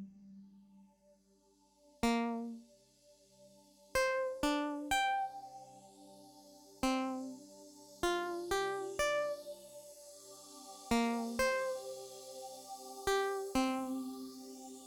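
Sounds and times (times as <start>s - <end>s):
ambient music: 3.5s - 14.8s.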